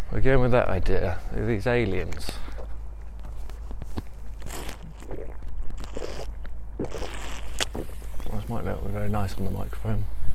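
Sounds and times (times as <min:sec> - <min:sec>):
speech: 0:00.1 - 0:02.5, 0:08.5 - 0:10.2
person drinking water: 0:04.4 - 0:08.0.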